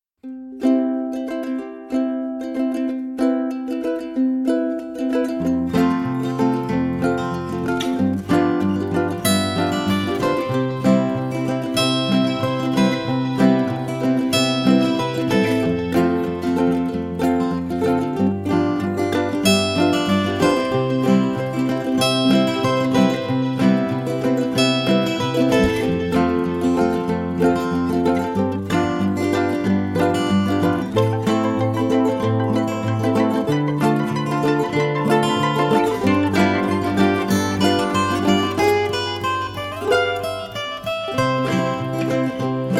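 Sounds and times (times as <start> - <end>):
romance instrumental music: 0.2 - 42.7.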